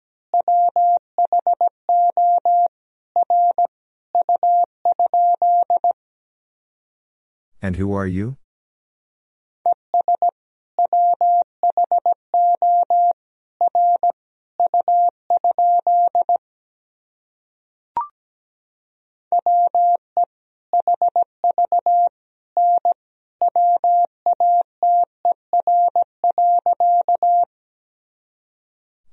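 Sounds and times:
Morse code tones at 17 words per minute: 0.5s - 5.9s, 9.9s - 13.1s, 13.7s - 16.3s, 19.4s - 20.0s, 20.8s - 27.5s
speech: 7.6s - 8.4s.

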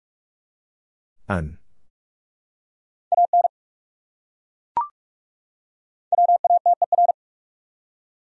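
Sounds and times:
speech: 1.3s - 1.6s
Morse code tones at 45 wpm: 6.1s - 7.1s.

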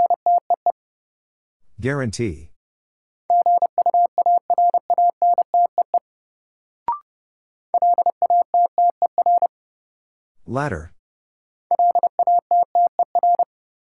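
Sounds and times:
speech: 1.8s - 2.5s, 10.5s - 11.0s
Morse code tones at 30 words per minute: 3.3s - 6.0s, 7.8s - 9.5s, 11.7s - 13.5s.

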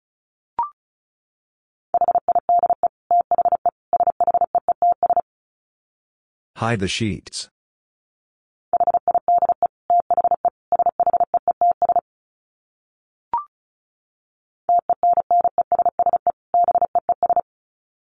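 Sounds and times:
Morse code beeps at 35 words per minute: 2.0s - 5.2s, 8.8s - 12.0s, 14.7s - 17.4s
speech: 6.6s - 7.6s.

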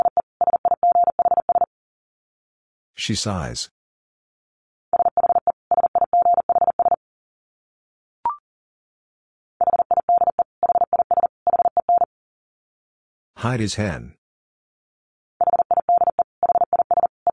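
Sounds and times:
Morse code tones at 40 words per minute: 0.0s - 1.7s, 5.0s - 7.0s, 9.6s - 12.1s, 15.4s - 17.3s
speech: 3.0s - 3.8s, 13.4s - 14.2s.

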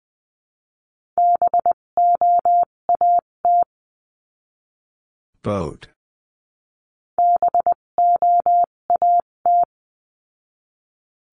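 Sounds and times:
Morse code tones sending a word: 1.2s - 3.7s, 7.2s - 9.7s
speech: 5.4s - 6.0s.

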